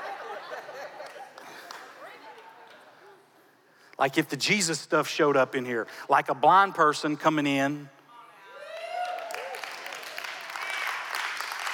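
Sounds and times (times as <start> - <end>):
laughter: 0.0 - 2.3
audience clapping: 1.0 - 2.0, 8.7 - 11.7
speech: 4.0 - 8.0.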